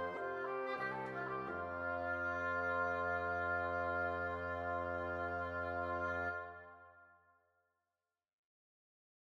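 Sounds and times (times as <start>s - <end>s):
woodwind trio: 0.0s - 7.1s.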